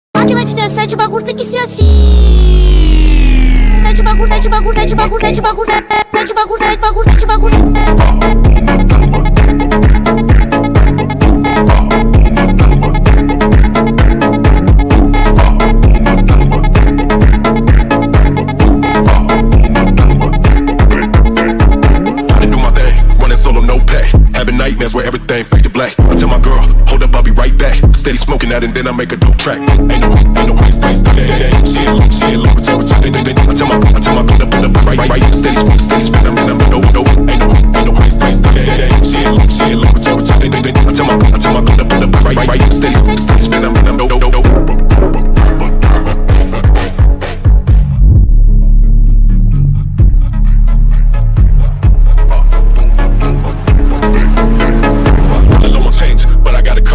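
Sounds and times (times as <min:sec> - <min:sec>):
Brazilian phonk music: 0:00.2 - 0:56.9.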